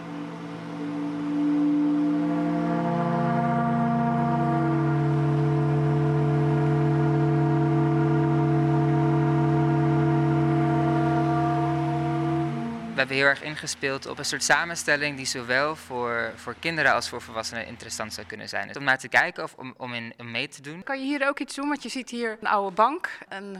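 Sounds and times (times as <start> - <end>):
vacuum-cleaner-powered pipe organ playing: 0.0 - 18.3
speech: 13.0 - 23.5.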